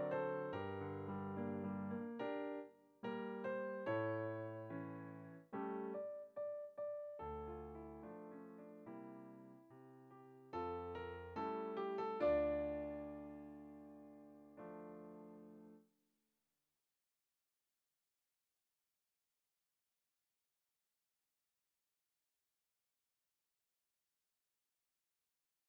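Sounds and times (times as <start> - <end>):
piano: 0.0 - 15.8.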